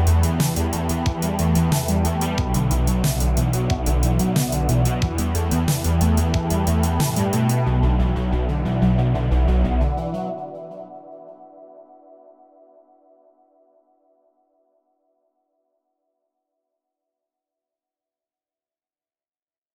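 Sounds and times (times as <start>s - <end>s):
synthwave music: 0.0s - 13.7s.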